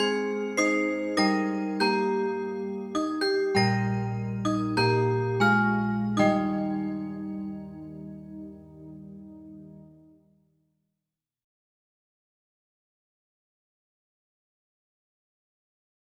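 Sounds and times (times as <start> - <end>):
solo music for family prayer: 0.0 - 10.4.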